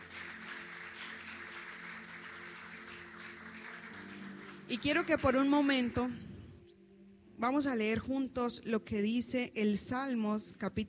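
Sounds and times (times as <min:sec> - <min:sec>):
audience applause: 0:00.0 - 0:05.2
speech: 0:04.7 - 0:06.3, 0:07.4 - 0:10.8.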